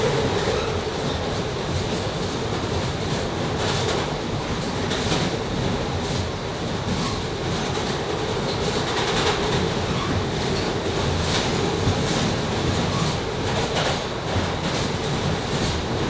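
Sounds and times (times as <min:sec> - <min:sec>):
London underground train interior during a ride: 0:00.0 - 0:16.0.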